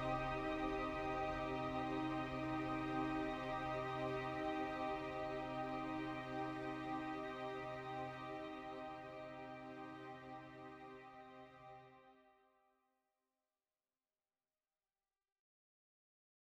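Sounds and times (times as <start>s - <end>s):
ambience: 0.0s - 9.7s.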